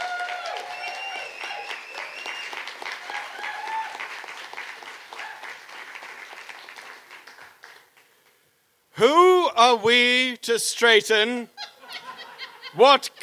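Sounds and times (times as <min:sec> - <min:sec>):
whoops and cheers: 0:00.0 - 0:04.2, 0:05.1 - 0:05.6
crowd applause: 0:00.0 - 0:08.1
speech: 0:09.0 - 0:11.6, 0:12.8 - 0:13.2
laughter: 0:11.6 - 0:13.2.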